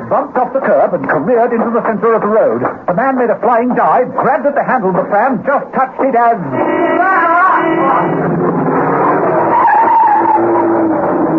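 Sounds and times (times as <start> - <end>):
speech: 0.1 - 8.5
van skidding on a wet road, tire squealing: 6.6 - 11.3.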